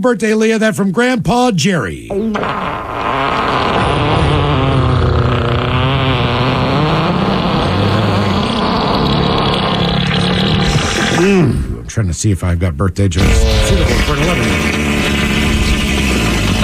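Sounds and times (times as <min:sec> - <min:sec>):
speech: 0:00.0 - 0:04.4, 0:11.2 - 0:14.6
fart sound effects: 0:02.1 - 0:11.9, 0:13.2 - 0:16.6.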